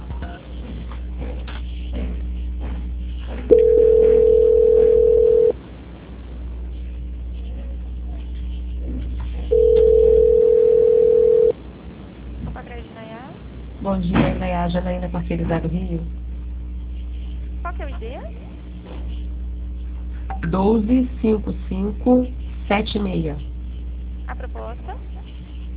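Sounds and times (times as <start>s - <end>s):
constant low hum: 0.0s - 25.7s
telephone line beeps during a call transfer: 3.5s - 5.6s, 9.5s - 11.5s
speech: 14.0s - 16.2s, 20.4s - 23.5s, 24.3s - 25.1s.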